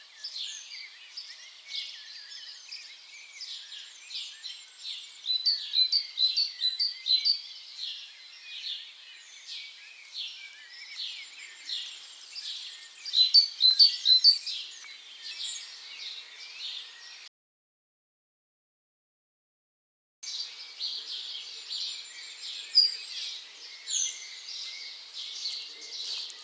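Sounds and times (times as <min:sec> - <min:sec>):
twittering from other birds: 0:00.0 - 0:17.3, 0:20.2 - 0:26.4
great tit rapid chipping calls: 0:12.0 - 0:17.3, 0:20.2 - 0:26.4.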